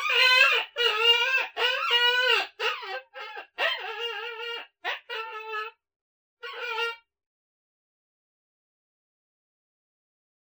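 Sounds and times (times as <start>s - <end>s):
coyote pups yipping and howling: 0.0s - 5.7s.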